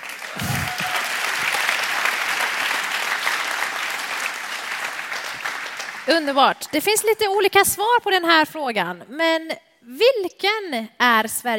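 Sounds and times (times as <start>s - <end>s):
audience applause: 0.0s - 6.8s
speech: 6.1s - 11.5s.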